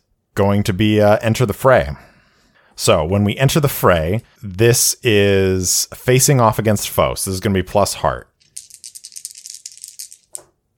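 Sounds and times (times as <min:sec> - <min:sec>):
speech: 0:00.4 - 0:02.1, 0:02.8 - 0:08.3
dice rolling: 0:08.4 - 0:10.6.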